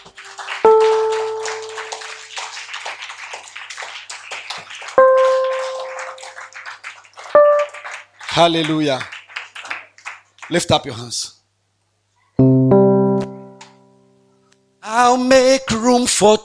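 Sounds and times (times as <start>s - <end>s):
audience clapping hands: 0.0s - 11.0s
speech: 8.4s - 9.1s, 10.5s - 11.3s, 12.4s - 12.6s, 15.2s - 16.4s.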